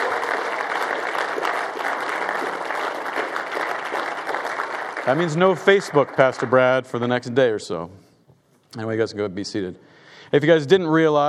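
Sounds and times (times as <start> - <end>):
audience applause: 0.0 - 6.9
speech: 5.0 - 8.0, 8.7 - 11.2.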